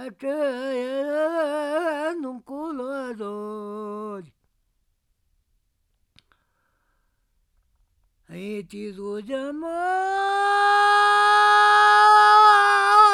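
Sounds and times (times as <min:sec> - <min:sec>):
folk song: 0:00.0 - 0:04.4, 0:08.2 - 0:13.1.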